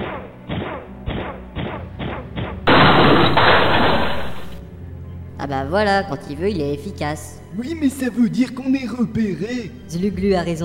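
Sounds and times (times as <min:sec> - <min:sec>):
door smashed open: 0:02.7 - 0:04.6
speech: 0:05.5 - 0:10.6.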